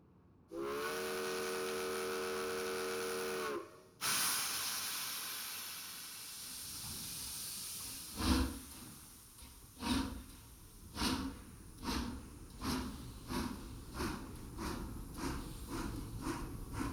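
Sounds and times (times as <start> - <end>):
steam whistle: 0.5 - 4.4
steam hissing: 0.6 - 16.9.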